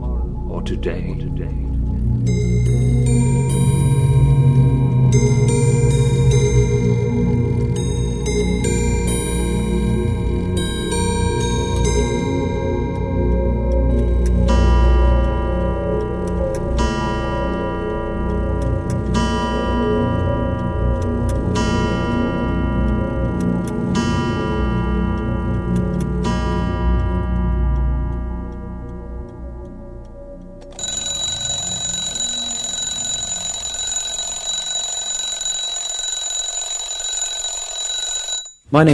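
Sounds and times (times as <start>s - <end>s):
speech: 0.6s - 3.2s
clocks ticking in Timepiece Antiques clock shop in Dublin: 2.0s - 38.9s.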